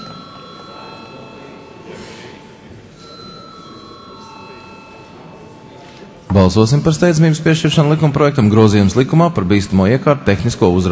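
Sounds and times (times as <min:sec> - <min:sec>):
parliament chamber electric bell ringing: 0:00.0 - 0:06.5
murmur: 0:00.0 - 0:10.9
speech: 0:06.4 - 0:10.9.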